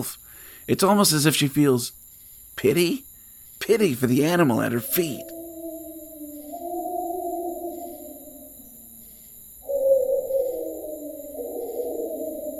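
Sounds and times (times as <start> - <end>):
speech: 0.0 - 2.0, 2.6 - 5.4
wolf howling: 4.8 - 12.5.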